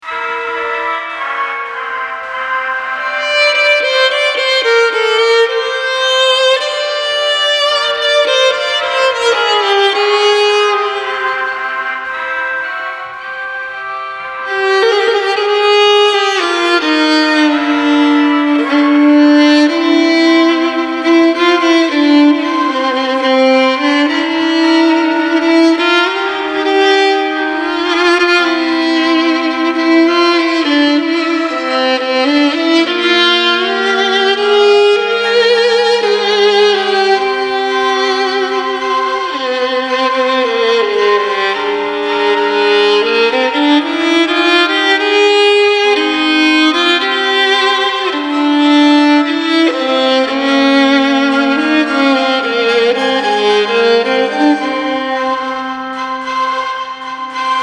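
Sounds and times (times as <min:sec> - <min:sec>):
martial klezmer music: 0:00.0 - 0:57.6.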